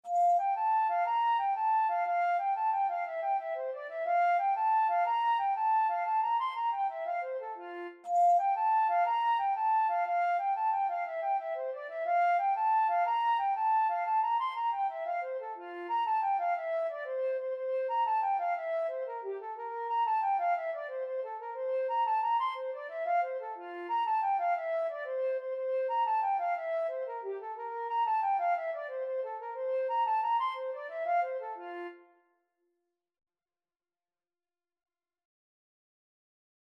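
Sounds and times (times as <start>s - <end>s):
flute: 0.0s - 32.3s.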